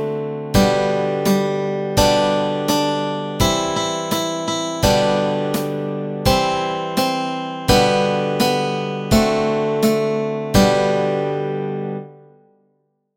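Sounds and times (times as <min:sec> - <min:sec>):
nursery rhyme melody and chords: 0:00.0 - 0:12.5.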